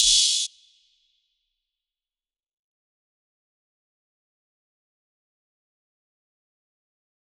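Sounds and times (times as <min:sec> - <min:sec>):
open hi-hats: 0:00.0 - 0:00.5.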